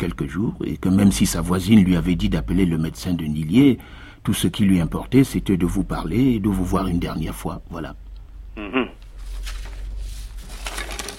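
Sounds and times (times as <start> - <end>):
speech: 0.0 - 8.0
paper sheets rustling and shuffling: 9.1 - 11.1.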